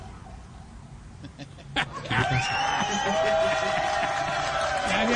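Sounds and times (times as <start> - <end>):
laughter: 1.2 - 5.1
crowd applause: 2.2 - 5.1.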